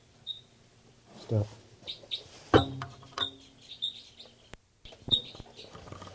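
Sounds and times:
short high-pitched bird calls: 0.2 - 0.5, 3.0 - 5.8
speech: 1.3 - 2.3.

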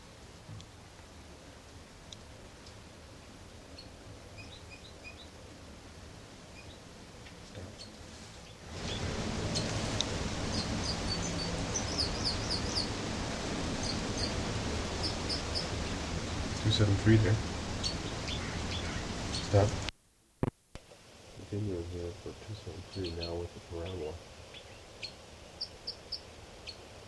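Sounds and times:
steady hiss: 0.0 - 27.0
bird singing in high chirping phrases: 3.7 - 5.3, 6.5 - 6.9, 7.7 - 9.8, 10.4 - 16.8, 17.7 - 19.7, 22.6 - 26.8
speech: 16.8 - 17.5, 19.5 - 19.8, 21.9 - 24.3.

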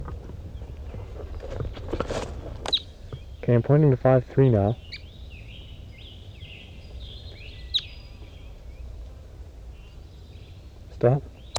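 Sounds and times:
wild crossbill calling: 0.0 - 11.5
speech: 3.5 - 4.9, 11.0 - 11.3.

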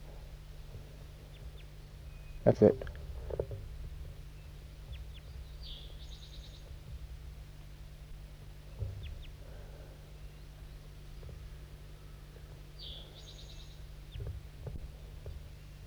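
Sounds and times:
low rumbling hum: 0.0 - 15.8
crossbill calls: 2.2 - 3.5
speech: 2.4 - 3.6.

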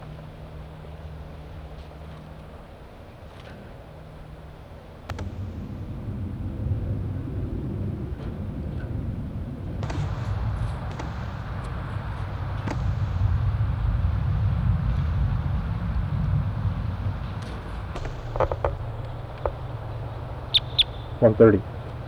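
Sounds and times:
wild birds calling around a parking lot: 5.1 - 22.0.

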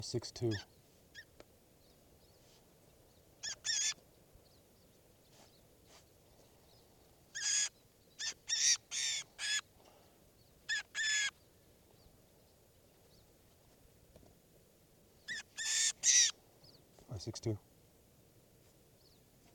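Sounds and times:
bird calls in a field recording: 0.0 - 13.3, 15.2 - 17.4.

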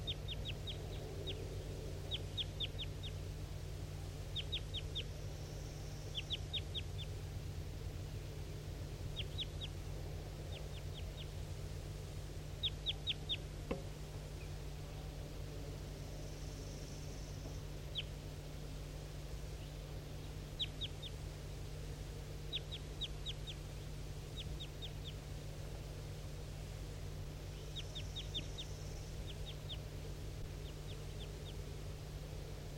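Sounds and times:
wild bird chirping: 0.0 - 3.4, 4.2 - 7.2, 8.4 - 11.4, 12.5 - 15.1, 15.8 - 18.2, 19.5 - 21.6, 22.2 - 25.3, 27.3 - 31.7
low hum: 0.0 - 32.7.

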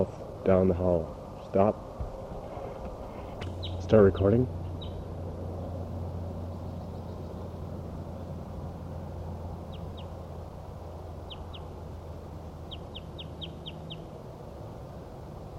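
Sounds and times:
speech: 0.0 - 1.9, 3.9 - 4.6
wild bird calling in distance: 1.2 - 5.2, 5.8 - 14.2.

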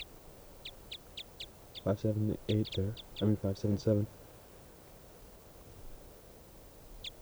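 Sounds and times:
bird calls: 0.0 - 4.2
low constant rumble: 1.5 - 4.2
speech: 1.8 - 4.2.

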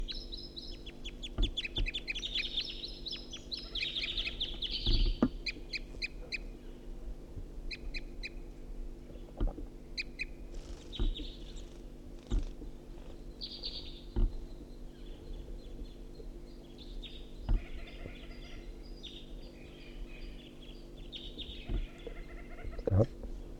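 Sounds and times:
wild bird calling with high chirping tooping notes: 0.0 - 6.8, 10.0 - 11.8, 13.0 - 22.8
steady low hum: 0.0 - 23.5.

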